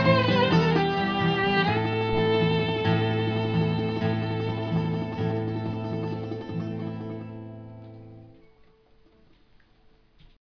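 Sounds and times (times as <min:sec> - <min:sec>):
violin: 0:00.0 - 0:08.0.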